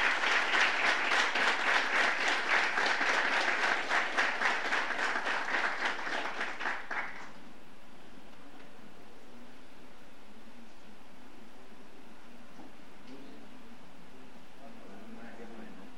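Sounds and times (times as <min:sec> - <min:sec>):
audience applause: 0:00.0 - 0:07.4.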